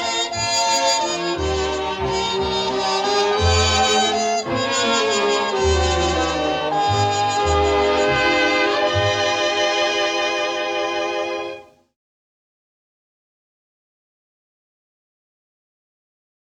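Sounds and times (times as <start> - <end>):
waltz music: 0.0 - 11.8.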